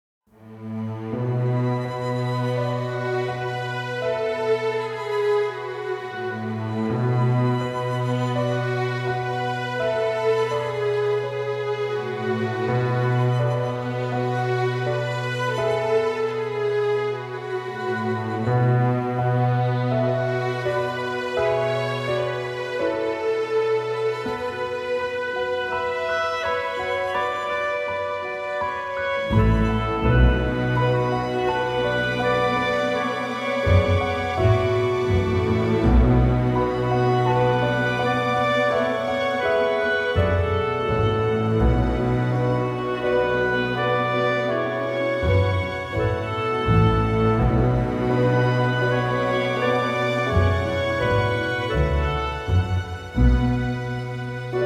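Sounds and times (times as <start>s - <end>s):
autumn strings underscore: 0.4s - 54.6s.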